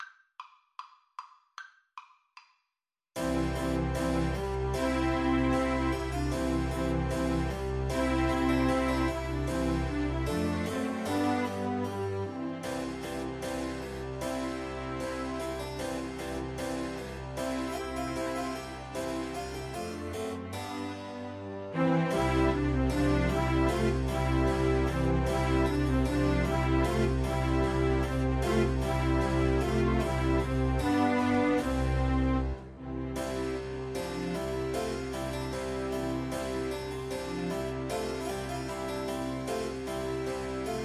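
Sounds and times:
piano piece: 3.2 - 40.8.

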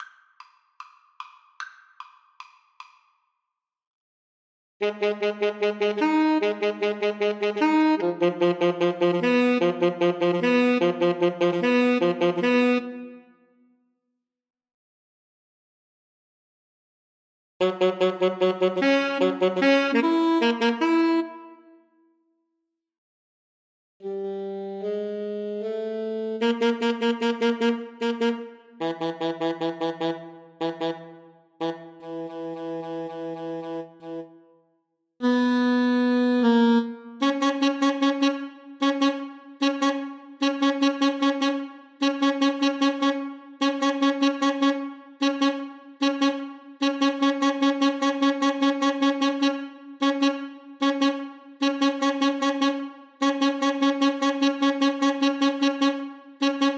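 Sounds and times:
saxophone duet: 4.8 - 13.3, 17.6 - 21.7, 24.0 - 34.5, 35.2 - 56.7.

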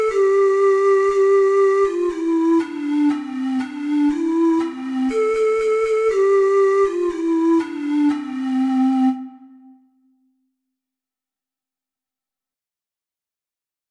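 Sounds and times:
six-hole ocarina playing a carol: 0.0 - 10.1.

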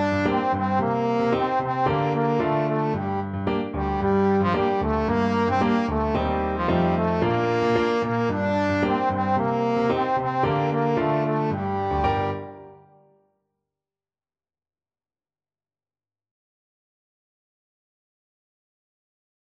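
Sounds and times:
trombone playing a scale: 0.0 - 12.8.

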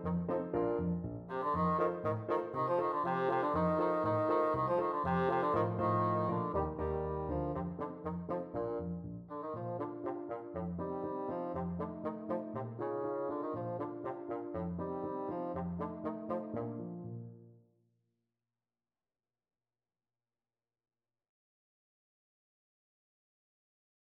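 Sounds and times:
bassoon playing an ecossaise: 0.0 - 17.5.

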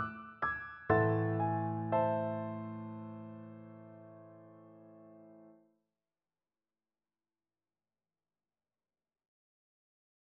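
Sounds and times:
piano duet: 0.0 - 5.6.

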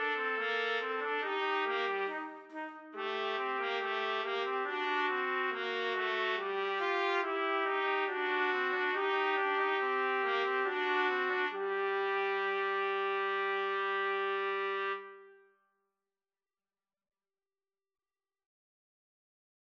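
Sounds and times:
trumpet trio playing: 0.0 - 15.3.

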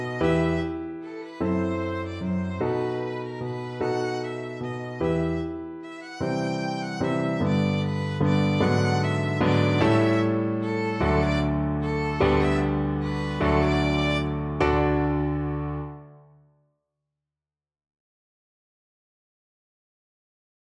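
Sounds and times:
violin melody: 0.0 - 15.6.

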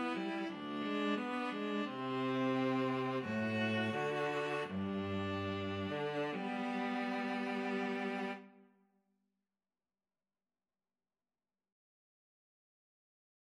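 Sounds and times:
string trio playing: 0.0 - 8.5.

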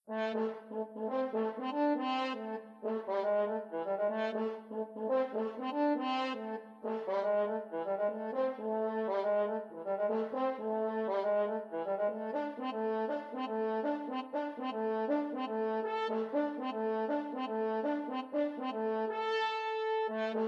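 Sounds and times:
French horn: 0.1 - 20.4.

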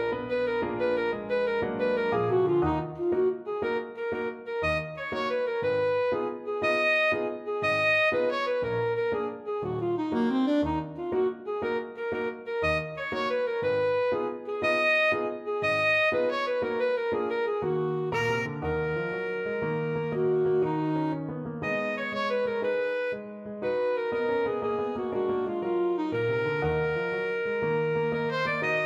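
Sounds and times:
alto saxophone playing a tarantelle: 0.0 - 28.8.

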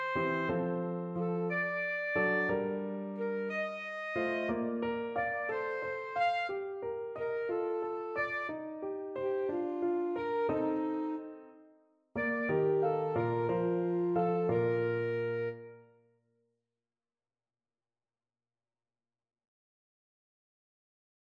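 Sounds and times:
alto saxophone: 0.0 - 11.5, 12.2 - 15.9.

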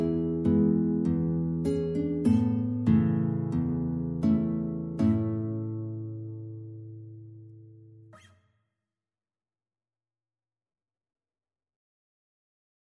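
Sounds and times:
fado guitar playing: 0.0 - 8.3.

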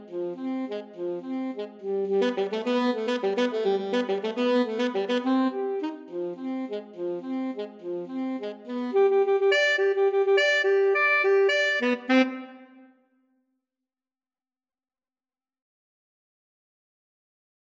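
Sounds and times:
clarinet: 0.0 - 13.0
saxophone: 0.0 - 13.0.

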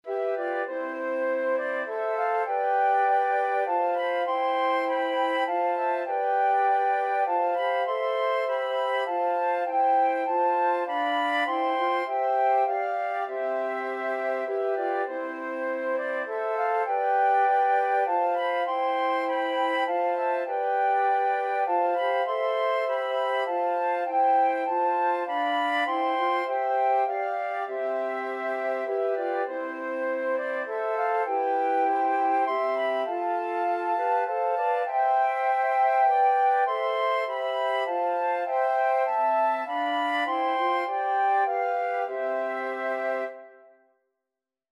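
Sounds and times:
flute quartet playing a carol: 0.0 - 43.7.

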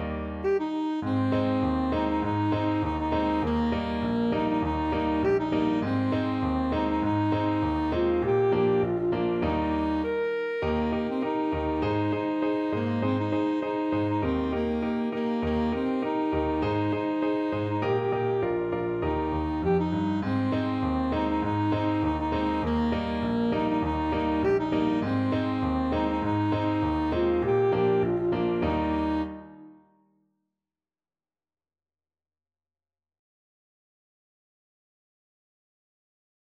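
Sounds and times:
alto saxophone: 0.2 - 29.9.

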